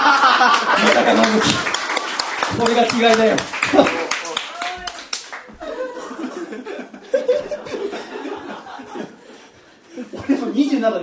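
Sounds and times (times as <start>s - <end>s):
laughter: 0.0s - 1.8s, 3.5s - 4.6s, 5.4s - 10.6s
speech: 0.4s - 1.8s, 2.5s - 4.0s, 10.8s - 11.0s
applause: 0.4s - 5.6s.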